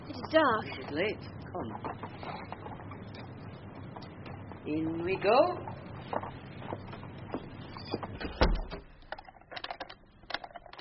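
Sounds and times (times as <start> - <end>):
speech: 0.3 - 2.6, 4.7 - 6.3
door being shut and locked: 8.0 - 10.7.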